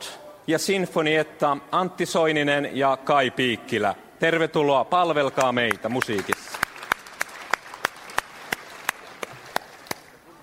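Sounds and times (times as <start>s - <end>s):
speech: 0.5s - 6.4s
audience applause in church: 5.4s - 10.2s.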